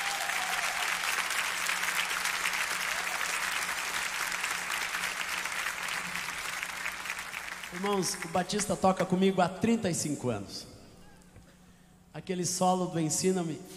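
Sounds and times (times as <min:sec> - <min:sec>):
audience applause: 0:00.0 - 0:08.5
speech: 0:07.7 - 0:10.7, 0:12.3 - 0:13.7.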